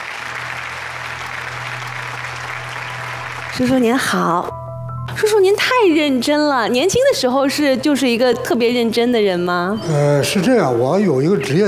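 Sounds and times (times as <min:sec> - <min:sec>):
audience applause welcoming a guest: 0:00.0 - 0:04.5
speech: 0:03.6 - 0:04.6, 0:05.2 - 0:11.6.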